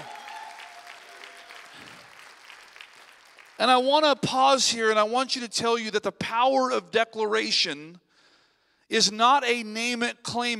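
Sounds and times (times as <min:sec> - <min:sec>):
audience applause: 0:00.0 - 0:03.6
speech: 0:03.6 - 0:08.0, 0:08.9 - 0:10.5.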